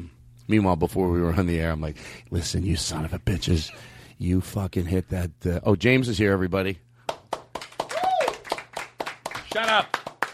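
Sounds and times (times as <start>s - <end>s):
speech: 0.5s - 6.8s, 9.5s - 10.0s
rhythmic clapping: 7.0s - 10.3s
sliding vocal whoop: 7.9s - 8.4s.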